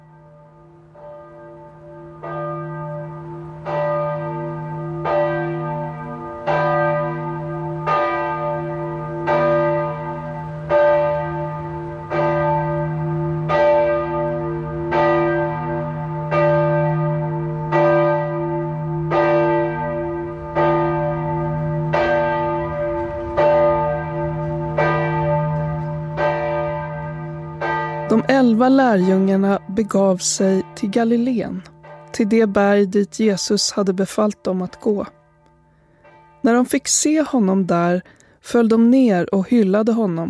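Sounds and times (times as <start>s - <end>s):
church bell of Gränna kyrka ringing: 0.0s - 40.2s
speech: 28.6s - 35.2s, 36.5s - 40.2s.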